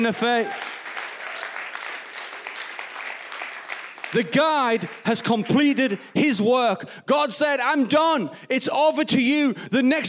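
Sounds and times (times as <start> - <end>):
speech: 0.0 - 0.7, 4.1 - 10.0
audience round of applause: 0.0 - 6.2.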